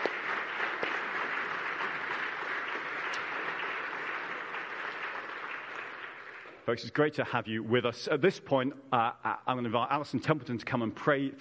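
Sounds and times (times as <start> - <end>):
audience applause: 0.0 - 6.9
speech: 6.7 - 11.3.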